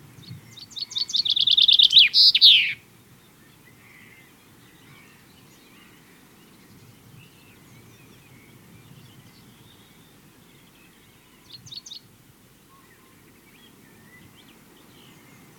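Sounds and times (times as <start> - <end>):
chaffinch singing a rapid trill with end flourish: 0.2 - 2.8.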